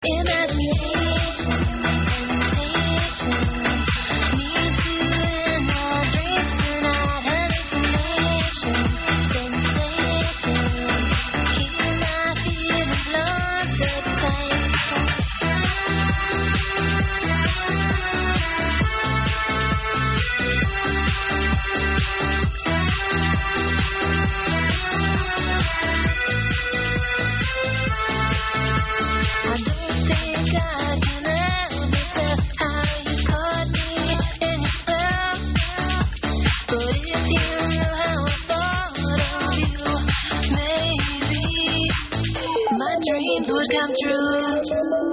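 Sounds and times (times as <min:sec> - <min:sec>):
old techno music: 0:00.0 - 0:45.1.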